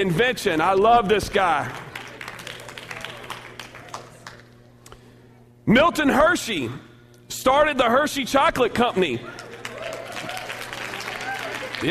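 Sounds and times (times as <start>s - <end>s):
speech: 0.0s - 1.8s, 5.7s - 9.4s
audience applauding: 1.6s - 4.5s, 9.3s - 11.9s.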